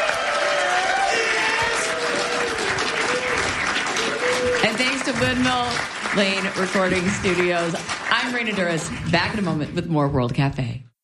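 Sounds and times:
audience applauding a band after a live session at a recording studio in Dublin: 0.0s - 9.7s
speech: 5.2s - 10.9s.

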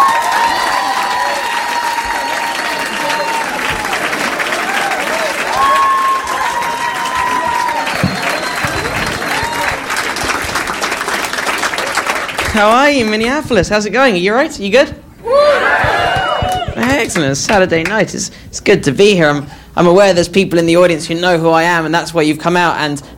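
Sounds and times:
audience applause: 0.0s - 13.0s, 15.4s - 17.3s
speech: 12.6s - 15.0s, 16.8s - 23.1s.

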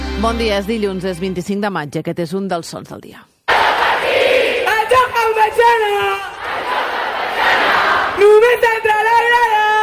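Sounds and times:
speech: 0.2s - 3.6s, 4.9s - 6.9s, 8.1s - 9.7s
thousands of fans cheering and chanting on Avinguda Maria Cristina: 3.5s - 9.8s.

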